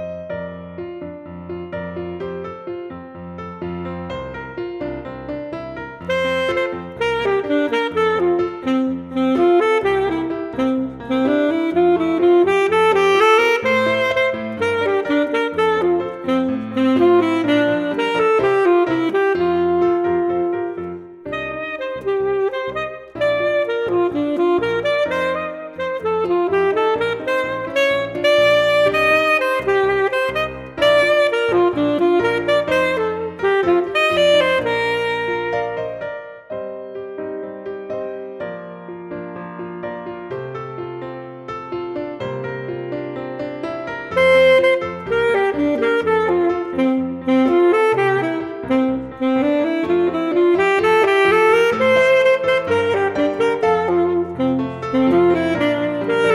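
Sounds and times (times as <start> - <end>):
full saxophone music: 3.4 - 36.5, 43.7 - 56.3.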